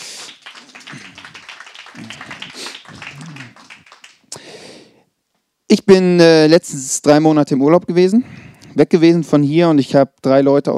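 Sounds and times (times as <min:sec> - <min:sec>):
audience applause: 0:00.0 - 0:04.3
speech: 0:05.9 - 0:10.7.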